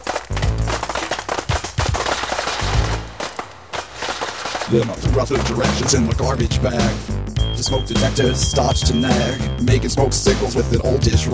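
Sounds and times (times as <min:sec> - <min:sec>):
Jiffy Pop popcorn popping: 0:00.0 - 0:07.0
speech: 0:04.7 - 0:11.3.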